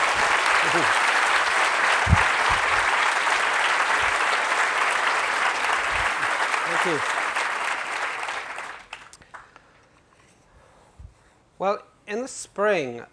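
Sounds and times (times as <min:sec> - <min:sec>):
audience applause welcoming an author at the Edinburgh Book Festival: 0:00.0 - 0:09.5
speech: 0:00.6 - 0:01.0, 0:06.8 - 0:07.2, 0:11.6 - 0:13.1.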